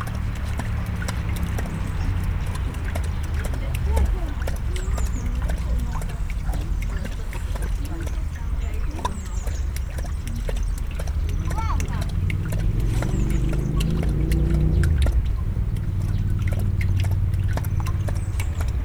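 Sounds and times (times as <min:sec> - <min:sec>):
lion at a zoo: 0:00.0 - 0:18.8
water flushing: 0:00.0 - 0:18.8.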